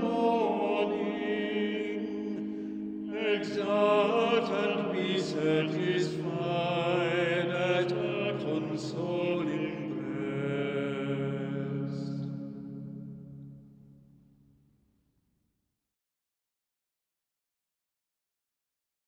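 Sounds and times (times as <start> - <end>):
slow music: 0.0 - 14.5.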